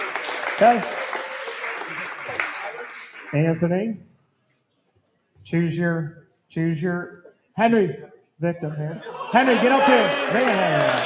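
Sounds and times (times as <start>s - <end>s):
audience clapping: 0.0s - 3.7s, 9.6s - 11.0s
speech: 0.6s - 1.0s, 3.3s - 4.1s, 5.4s - 11.0s
laughter: 9.0s - 11.0s.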